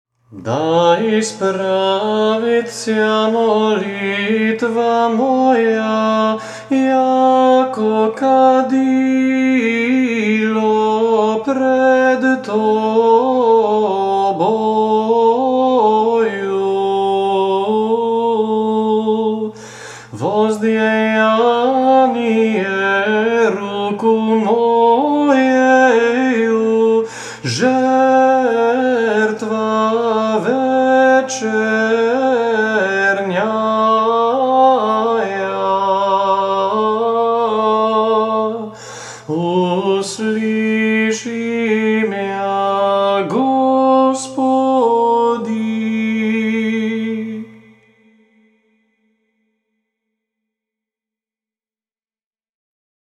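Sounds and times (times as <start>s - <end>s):
Serbian chant: 0.2s - 48.6s.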